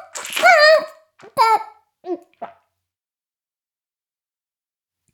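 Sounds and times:
oral sex sounds: 0.1s - 2.6s.

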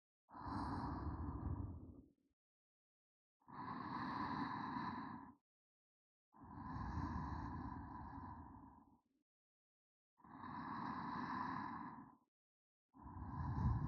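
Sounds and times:
sleeping breath: 0.3s - 1.9s, 3.5s - 5.4s, 6.4s - 8.9s, 10.2s - 12.2s, 13.0s - 13.8s.

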